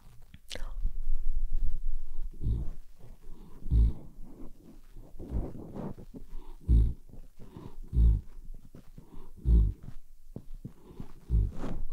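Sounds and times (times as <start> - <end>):
puppy dog snoring: 2.3 - 4.5, 5.2 - 8.4, 9.0 - 9.9, 10.8 - 11.8.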